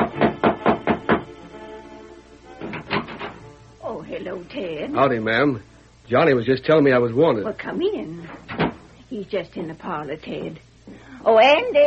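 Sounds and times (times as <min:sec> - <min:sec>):
knocking at a ranch house door: 0:00.0 - 0:01.3, 0:02.6 - 0:03.4, 0:08.5 - 0:08.8
speech: 0:04.2 - 0:08.5, 0:09.1 - 0:11.8.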